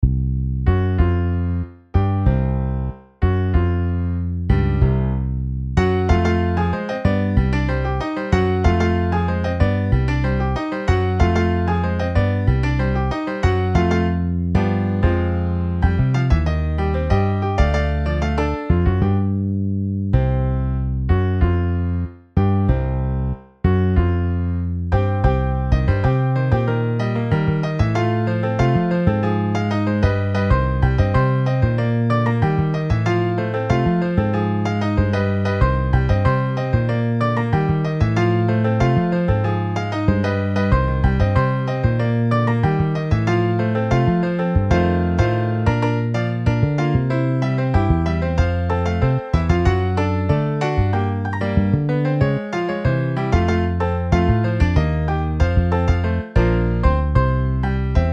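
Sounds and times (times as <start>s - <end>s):
MIDI piano and bass: 0.0s - 58.1s.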